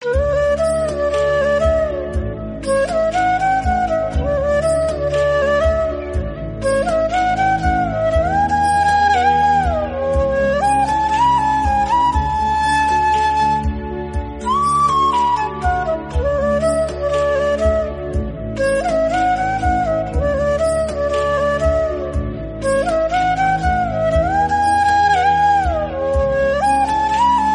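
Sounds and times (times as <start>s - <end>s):
flute: 0.0s - 27.5s.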